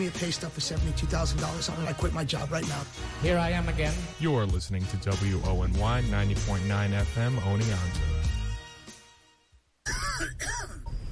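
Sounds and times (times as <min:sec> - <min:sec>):
speech: 0:00.0 - 0:08.4
cough: 0:09.8 - 0:11.0.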